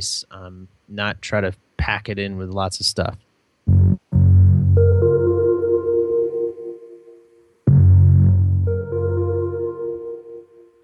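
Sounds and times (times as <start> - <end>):
speech: 0.0 - 3.3
deep bass line: 3.7 - 5.8, 7.7 - 9.8
sustained background keyboard chords: 3.7 - 10.8.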